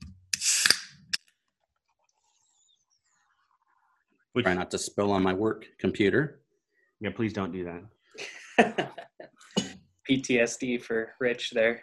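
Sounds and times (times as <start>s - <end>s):
can of stout beer opening: 0.4s - 0.9s
speech: 4.4s - 6.4s, 7.0s - 9.0s, 10.1s - 11.8s
laughter: 8.2s - 9.7s.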